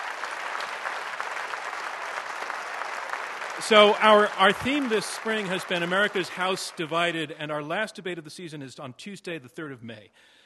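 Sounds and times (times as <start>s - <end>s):
audience applause: 0.0s - 7.3s
speech: 3.6s - 10.4s.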